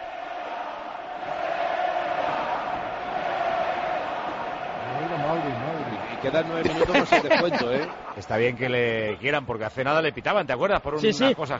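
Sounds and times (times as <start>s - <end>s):
Anoeta stadium crowd chanting a player's name: 0.0s - 8.2s
speech: 6.2s - 11.5s
laughter: 6.3s - 8.8s.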